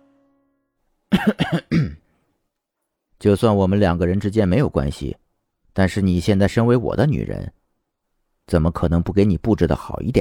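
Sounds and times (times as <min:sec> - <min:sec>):
light throaty coughs: 0:01.1 - 0:02.2
speech: 0:01.2 - 0:02.0, 0:03.2 - 0:05.2, 0:05.8 - 0:07.6, 0:08.5 - 0:10.2.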